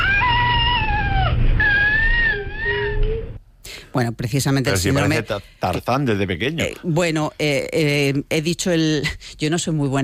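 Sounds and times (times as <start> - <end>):
cri du chat baby crying high-pitched: 0.0 - 3.4
speech: 4.0 - 10.0.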